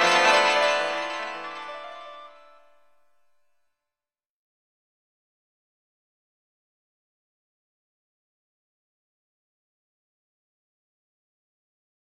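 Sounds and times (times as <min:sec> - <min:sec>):
shakuhachi playing on a rocky shore: 0:00.0 - 0:02.7.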